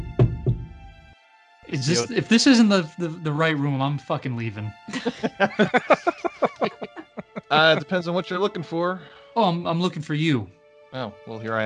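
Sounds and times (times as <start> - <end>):
slow knocking on a door: 0.0 - 0.7
speech: 1.7 - 6.8, 7.5 - 11.6
laughter: 1.8 - 2.4, 4.9 - 8.6.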